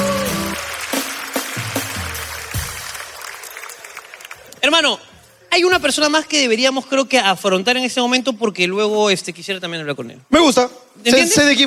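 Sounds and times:
audience applause: 0:00.0 - 0:04.8
speech: 0:04.7 - 0:11.6.

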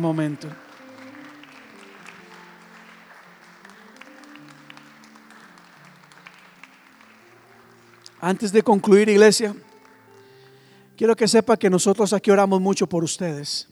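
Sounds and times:
speech: 0:00.0 - 0:00.6, 0:08.2 - 0:09.7, 0:11.0 - 0:13.7
audience applause: 0:00.0 - 0:11.0.

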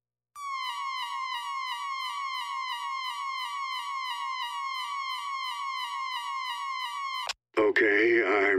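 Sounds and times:
emergency broadcast system test tone: 0:00.4 - 0:07.4
speech: 0:07.7 - 0:08.5.

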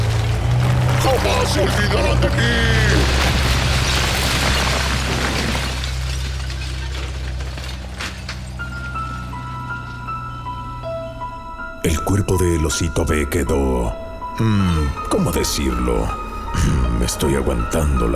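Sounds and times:
trucks crashing into building: 0:00.0 - 0:10.0
speech: 0:01.2 - 0:03.2, 0:12.1 - 0:18.1.

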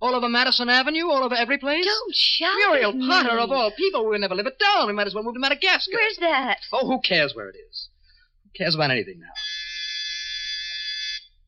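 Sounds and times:
speech: 0:00.0 - 0:07.9, 0:08.6 - 0:09.6
electric doorbell buzzing: 0:09.4 - 0:11.4.

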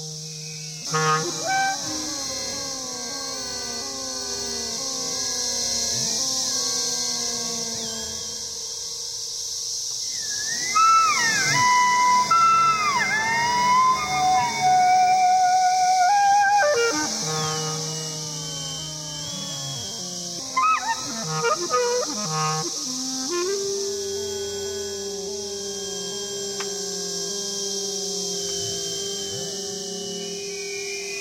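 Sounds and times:
brood of cicadas in Lexington Virginia buzzing: 0:00.0 - 0:31.1.

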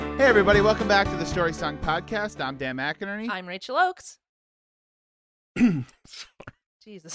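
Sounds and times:
speech: 0:00.2 - 0:04.2, 0:05.5 - 0:07.1
person coughing: 0:05.6 - 0:06.3.

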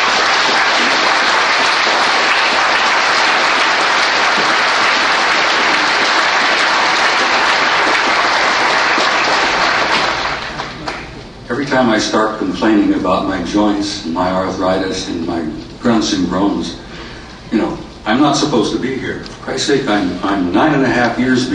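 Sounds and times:
audience applause: 0:00.0 - 0:11.2
speech: 0:11.8 - 0:16.8, 0:17.5 - 0:21.5.

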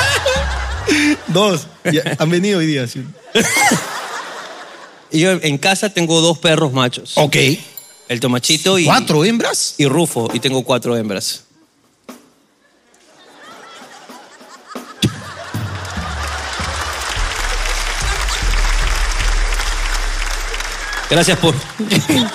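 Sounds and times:
audience applause: 0:00.0 - 0:01.3, 0:15.0 - 0:22.3
laughter: 0:00.0 - 0:02.2, 0:03.2 - 0:05.1, 0:12.6 - 0:19.9, 0:20.6 - 0:22.3
speech: 0:01.0 - 0:03.9, 0:05.1 - 0:11.5, 0:21.1 - 0:22.3.

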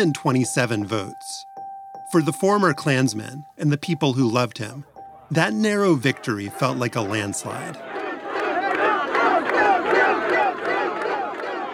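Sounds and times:
speech: 0:00.0 - 0:01.5, 0:02.1 - 0:07.9
large crowd cheering at an election night party: 0:05.2 - 0:11.7.

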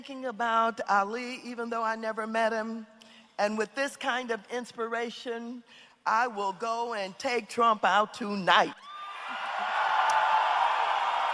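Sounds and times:
speech: 0:00.0 - 0:09.5
higher whoop: 0:08.8 - 0:11.3
crowd cheering and roaring: 0:09.0 - 0:11.3.

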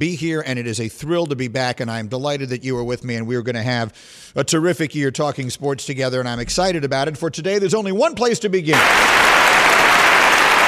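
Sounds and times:
speech: 0:00.0 - 0:09.8
short round of applause: 0:08.7 - 0:10.6.

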